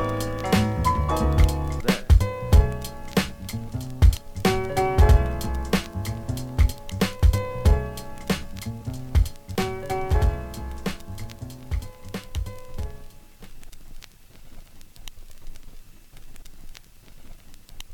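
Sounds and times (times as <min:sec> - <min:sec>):
piano: 0:00.0 - 0:13.4.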